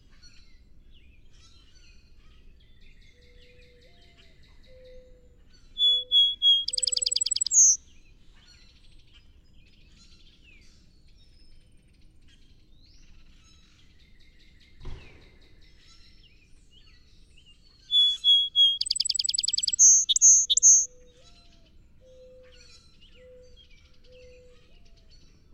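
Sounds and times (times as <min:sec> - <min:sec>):
song sparrow song: 0:05.8 - 0:07.8, 0:17.9 - 0:21.1.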